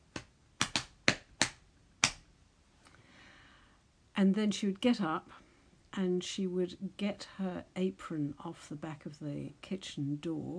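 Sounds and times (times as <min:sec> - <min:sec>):
fingers drumming on thighs: 0:00.1 - 0:02.2
speech: 0:04.2 - 0:05.4, 0:06.0 - 0:10.5.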